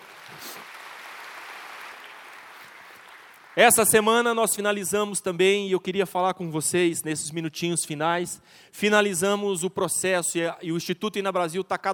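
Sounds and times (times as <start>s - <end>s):
audience applauding: 0.0s - 3.8s
speech: 3.6s - 11.9s.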